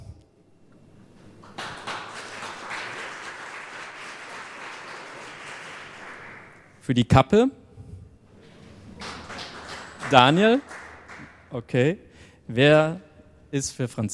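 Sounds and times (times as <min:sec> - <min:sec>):
audience applause: 0:01.4 - 0:06.7, 0:08.8 - 0:11.5
speech: 0:06.9 - 0:07.6, 0:10.1 - 0:10.7, 0:11.5 - 0:14.1.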